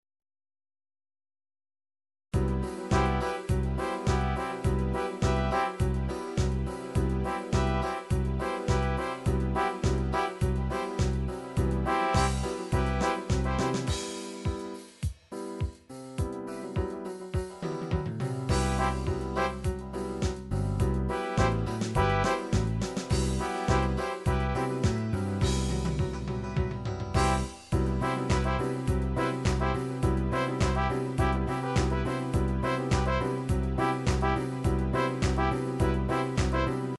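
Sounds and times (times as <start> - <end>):
1970s disco music: 2.4 - 36.9.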